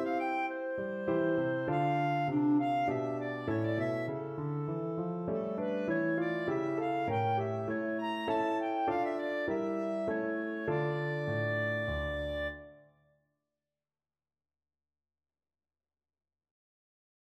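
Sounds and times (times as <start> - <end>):
clarinet minuet in D minor: 0.0 - 12.8.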